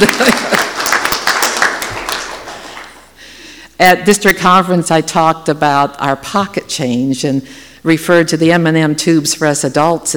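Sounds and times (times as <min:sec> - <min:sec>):
speech: 0:00.0 - 0:00.5, 0:03.8 - 0:10.1
audience applause: 0:00.0 - 0:03.0.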